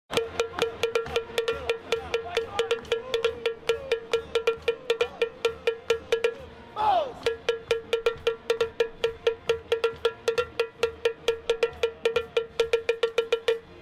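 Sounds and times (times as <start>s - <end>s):
cowbell: 0.1s - 6.6s, 7.2s - 13.7s.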